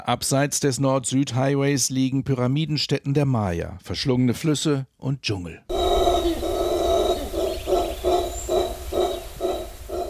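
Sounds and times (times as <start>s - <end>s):
speech: 0.0s - 5.8s
black howler monkeys roaring in a chorus: 5.7s - 10.0s.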